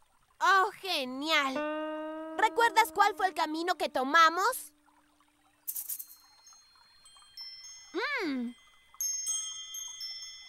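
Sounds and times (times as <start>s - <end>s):
speech: 0.4s - 4.8s, 8.0s - 8.6s
little bells jingling: 5.7s - 10.4s.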